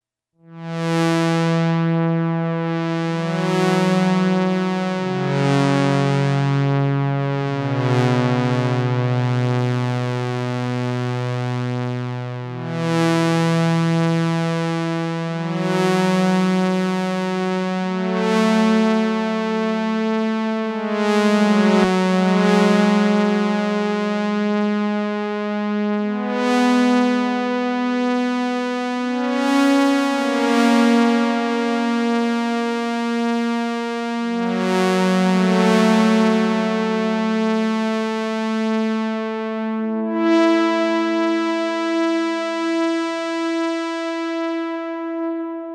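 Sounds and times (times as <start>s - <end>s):
Ensoniq SQ-80 synthesizer: 0.4s - 45.7s.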